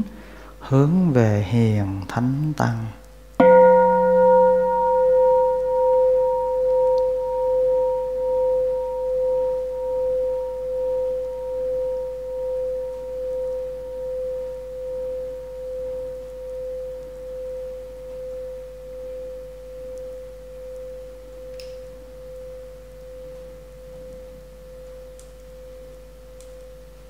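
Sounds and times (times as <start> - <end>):
speech: 0.0 - 3.0
single deep bell stroke ringing: 3.4 - 19.4.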